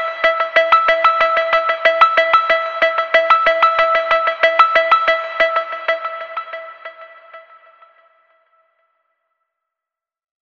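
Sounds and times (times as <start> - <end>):
groove music: 0.0 - 8.0.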